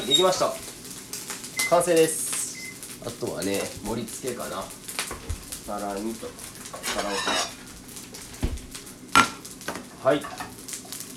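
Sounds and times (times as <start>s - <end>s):
speech: 0.1s - 0.7s, 1.7s - 2.2s, 3.0s - 4.8s, 5.6s - 7.6s, 10.0s - 10.4s
metal pan and utensils clattering while stirring fried rice in a wok: 6.7s - 7.6s.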